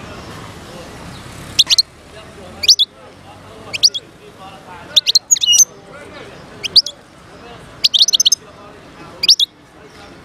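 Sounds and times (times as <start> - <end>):
wild European goldfinch singing: 1.5 - 1.9, 2.6 - 2.9, 3.6 - 4.1, 4.9 - 5.7, 6.4 - 7.0, 7.8 - 8.4, 9.2 - 9.5.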